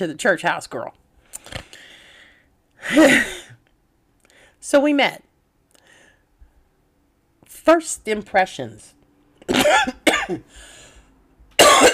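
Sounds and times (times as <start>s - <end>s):
speech: 0.0s - 1.7s, 2.8s - 3.4s, 4.6s - 5.2s, 7.6s - 10.7s
person coughing: 2.8s - 3.6s, 9.5s - 10.5s, 11.6s - 11.9s.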